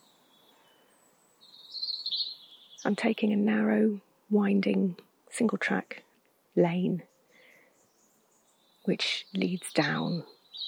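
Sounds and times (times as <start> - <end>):
European robin singing: 0.0 - 10.6
speech: 2.8 - 6.0, 6.6 - 7.1, 8.8 - 10.6.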